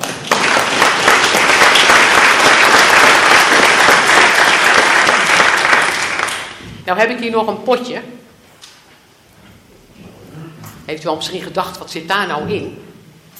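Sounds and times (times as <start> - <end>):
audience applause: 0.0 - 6.6
speech: 6.9 - 8.2, 10.9 - 12.9.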